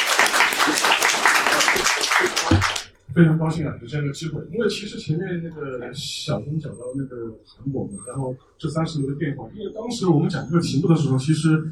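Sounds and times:
audience applause: 0.0 - 2.9
speech: 3.2 - 11.6.

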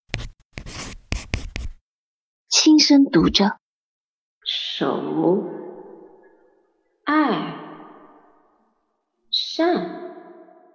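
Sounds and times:
pen writing on paper: 0.1 - 1.8
speech: 2.8 - 3.6, 4.8 - 5.5.

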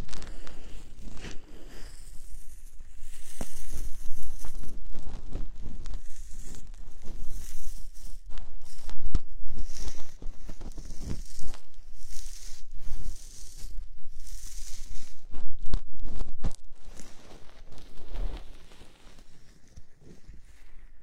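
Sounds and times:
lace-gloved hands massaging the ears: 0.2 - 20.3.

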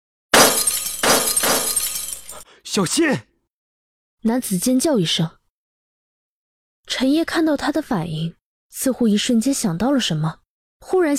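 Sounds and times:
shelf of glass potion bottles crashing and shattering: 0.4 - 2.4
tinkling glass: 0.4 - 2.4
speech: 2.6 - 3.3, 4.2 - 5.4, 6.9 - 11.1.

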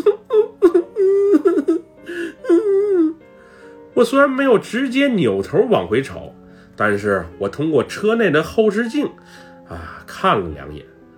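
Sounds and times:
small child crying: 0.0 - 3.2
speech: 4.0 - 10.9.

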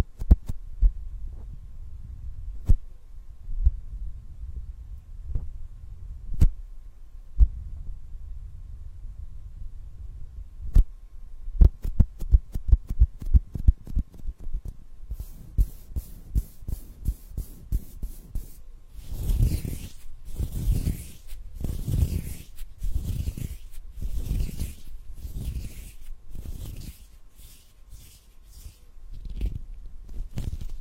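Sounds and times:
soft low thumps of hand massage: 0.1 - 2.9, 3.5 - 5.6, 7.4 - 8.0, 11.5 - 14.6
hand massage rubbing strokes: 11.8 - 30.8
bright swishing rubs: 15.1 - 30.8.

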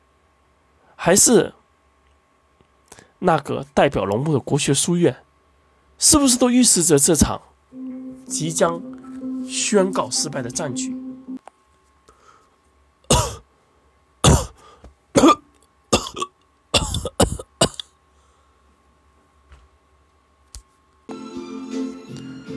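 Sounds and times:
speech: 1.0 - 1.6, 3.2 - 5.3, 6.0 - 11.0
coughing up blood: 13.1 - 13.4, 14.2 - 14.6, 15.2 - 17.9.

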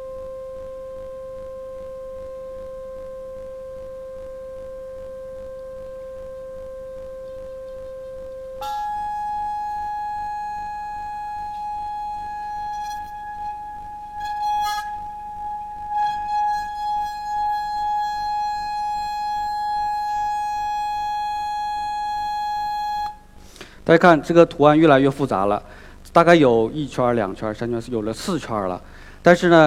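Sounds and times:
electronic tone rising in frequency: 0.0 - 23.2
vibrating plate buzzing and rattling: 0.0 - 23.4
speech: 23.9 - 29.6.

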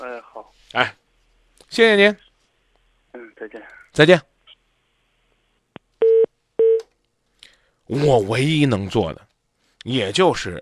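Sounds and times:
speech: 0.4 - 1.0, 1.6 - 2.2, 3.4 - 4.3, 7.9 - 10.6
telephone beeps after call hang-up: 6.0 - 6.8.

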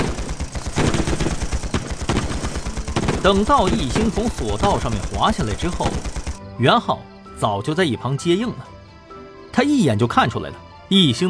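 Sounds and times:
three rifles opening fire to block a stairway: 0.0 - 6.4
speech: 3.2 - 8.7, 9.5 - 11.2.

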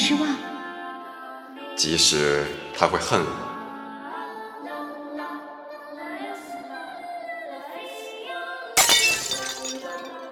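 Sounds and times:
speech: 1.8 - 3.5
oil lamp glass shattering: 8.8 - 10.3
tinkling glass fragments: 8.8 - 10.3.

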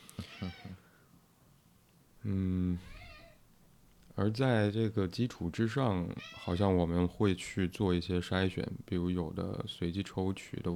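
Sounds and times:
cat meowing: 0.2 - 0.8, 2.8 - 3.4, 6.2 - 6.8
speech: 0.4 - 0.6, 2.2 - 3.0, 4.2 - 10.7.

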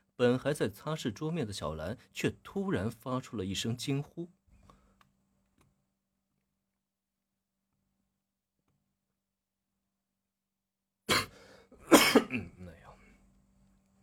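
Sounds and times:
speech: 0.2 - 4.4
coughing: 11.1 - 12.8.

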